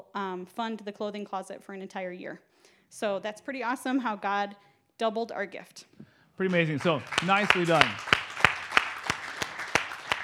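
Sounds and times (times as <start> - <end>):
speech: 0.2 - 8.2
audience clapping: 6.4 - 10.2.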